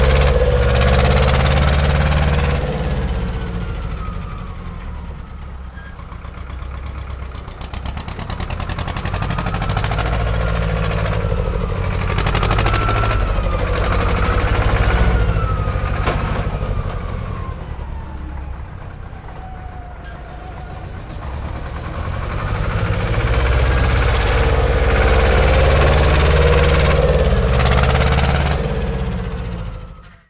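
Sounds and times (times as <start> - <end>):
old tractor: 0.0 - 30.2.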